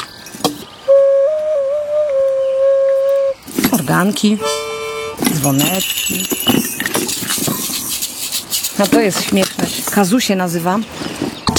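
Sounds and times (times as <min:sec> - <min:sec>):
ocarina playing: 0:00.9 - 0:07.8
speech: 0:03.9 - 0:04.6, 0:05.3 - 0:06.7, 0:08.8 - 0:11.5.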